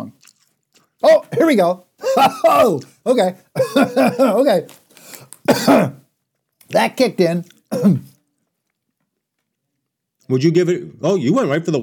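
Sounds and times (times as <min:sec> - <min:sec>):
speech: 0:01.0 - 0:06.0, 0:06.7 - 0:08.1, 0:10.3 - 0:11.8
person coughing after eating something spicy: 0:01.2 - 0:02.9, 0:03.6 - 0:04.6, 0:05.5 - 0:06.0, 0:07.7 - 0:08.2.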